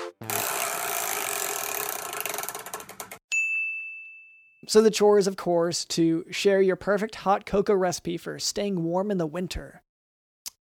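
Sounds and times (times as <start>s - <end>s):
large prize wheel spun in a studio ratcheting: 0.2s - 3.2s
bright sustained ding: 3.3s - 4.7s
speech: 4.7s - 9.8s.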